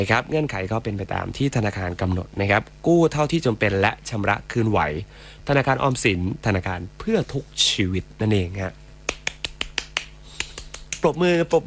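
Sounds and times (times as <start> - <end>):
speech: 0.0 - 8.8, 11.0 - 11.6
hand clapping: 9.0 - 11.2.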